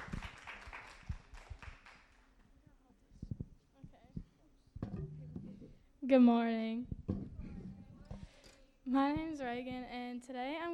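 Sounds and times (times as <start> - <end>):
audience applause: 0.0 - 2.2
speech: 6.1 - 7.0, 8.9 - 10.7.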